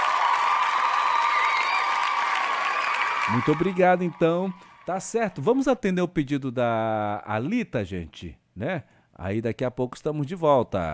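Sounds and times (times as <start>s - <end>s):
applause sound effect: 0.0s - 5.5s
speech: 3.3s - 10.9s.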